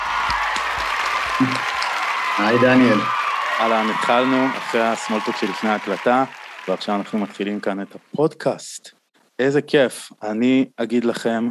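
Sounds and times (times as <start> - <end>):
crowd applauding: 0.0 - 8.0
speech: 1.4 - 1.7, 2.4 - 11.4.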